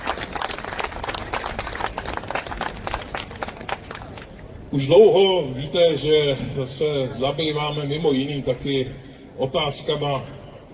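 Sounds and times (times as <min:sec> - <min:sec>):
crowd clapping: 0:00.0 - 0:04.4
speech: 0:04.7 - 0:10.4.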